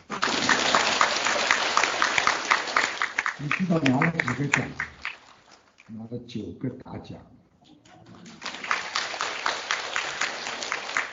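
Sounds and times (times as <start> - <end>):
audience applause: 0.0 - 5.6, 8.2 - 11.1
speech: 3.4 - 4.9, 5.9 - 7.4.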